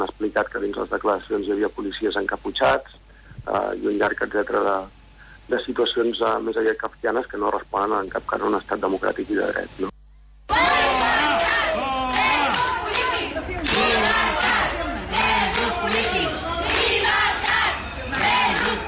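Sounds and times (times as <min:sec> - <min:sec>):
speech: 0:00.4 - 0:10.0
crowd of medical staff shouting and chanting at Hospital de Sant Pau in Barcelona: 0:10.5 - 0:18.8.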